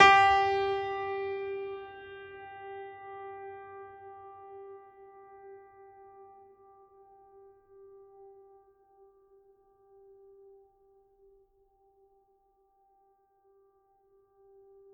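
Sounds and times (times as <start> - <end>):
classical piano: 0.0 - 4.6.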